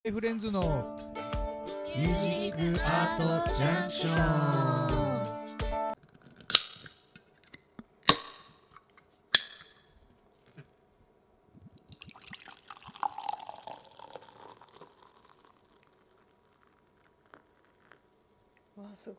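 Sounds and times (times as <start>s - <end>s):
speech: 0.0s - 1.2s, 2.0s - 5.1s
carbonated drink opening clicks and pops: 6.5s - 8.6s
carbonated drink fizzing while poured: 11.7s - 18.2s.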